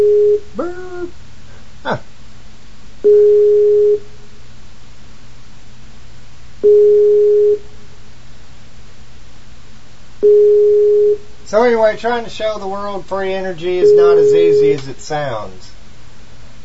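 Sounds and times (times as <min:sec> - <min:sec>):
telephone busy signal: 0:00.0 - 0:00.5, 0:03.0 - 0:04.0, 0:06.6 - 0:07.6, 0:10.2 - 0:11.2, 0:13.8 - 0:14.8
low constant hum: 0:00.0 - 0:16.6
speech: 0:11.5 - 0:15.7.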